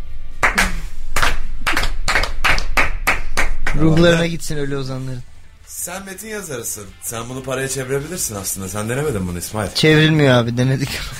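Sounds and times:
person clapping hands: 0.4 - 4.1
speech: 3.8 - 11.1.

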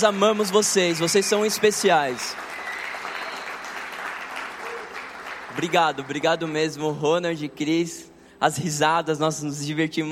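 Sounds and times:
speech: 0.0 - 2.5, 5.6 - 10.0
audience applause: 0.0 - 6.8.

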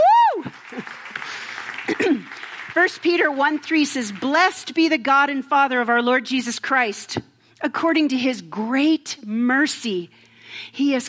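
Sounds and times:
audience applauding: 0.0 - 4.4
speech: 2.8 - 11.0.

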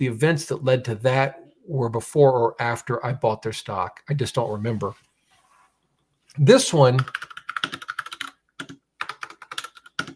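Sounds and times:
speech: 0.0 - 5.1, 6.4 - 7.3
typing on a computer keyboard: 7.0 - 10.1.

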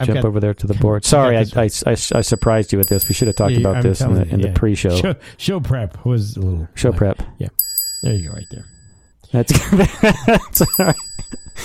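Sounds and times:
speech: 0.0 - 8.7, 9.3 - 11.6
child's tricycle bell ringing: 2.3 - 4.1, 7.6 - 9.1, 10.5 - 11.6
laughter: 9.5 - 10.5.

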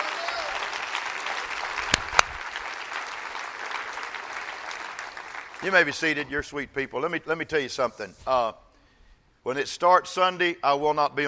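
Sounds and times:
audience applauding: 0.0 - 6.1
speech: 5.6 - 8.6, 9.4 - 11.2.

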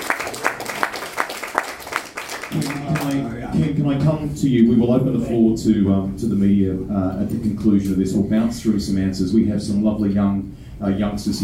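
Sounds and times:
audience applause for the riders: 0.0 - 3.4
speech: 3.5 - 11.4.

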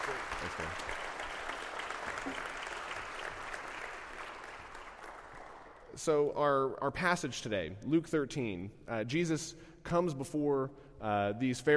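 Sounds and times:
audience applause: 0.0 - 5.9
speech: 6.0 - 11.7.

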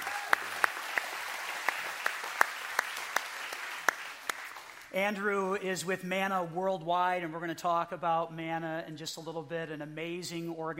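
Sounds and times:
audience applause: 0.0 - 4.9
speech: 4.9 - 10.7.

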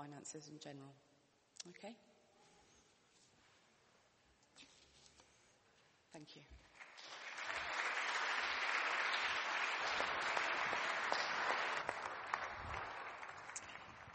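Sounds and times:
speech: 0.0 - 2.1, 6.1 - 6.7
audience applause: 6.7 - 14.1.

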